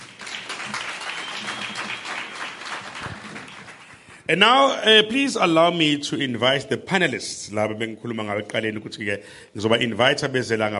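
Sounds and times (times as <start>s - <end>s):
audience applause at a music-industry panel celebration: 0.0s - 4.1s
speech: 4.3s - 10.7s.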